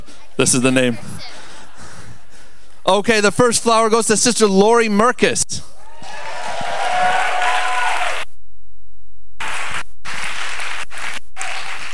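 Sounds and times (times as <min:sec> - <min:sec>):
speech: 0:00.4 - 0:01.4, 0:02.8 - 0:05.8
audience clapping: 0:06.0 - 0:08.2, 0:09.4 - 0:11.9.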